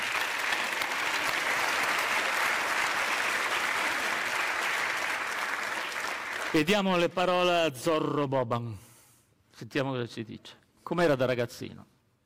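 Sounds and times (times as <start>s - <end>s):
audience applause: 0.0s - 6.7s
speech: 6.5s - 8.8s, 9.6s - 11.9s.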